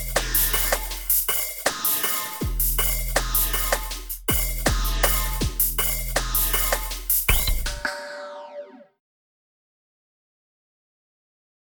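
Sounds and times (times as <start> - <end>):
street percussion beat: 0.0 - 8.1.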